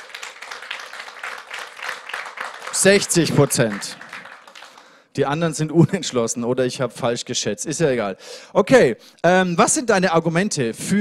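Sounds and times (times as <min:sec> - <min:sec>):
audience clapping: 0:00.0 - 0:05.1
speech: 0:02.8 - 0:04.1, 0:05.2 - 0:10.9.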